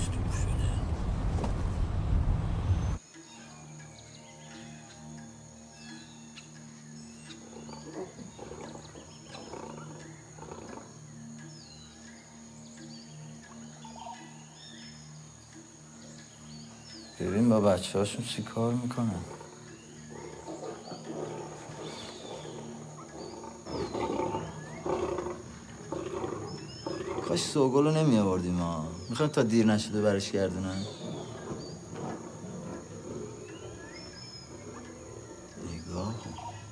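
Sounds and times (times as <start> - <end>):
steady hum: 0.0 - 3.0, 3.8 - 36.6
crickets: 0.0 - 36.6
lion roaring: 7.4 - 10.9, 19.1 - 27.7, 30.0 - 36.6
speech: 17.2 - 19.4, 27.6 - 31.0.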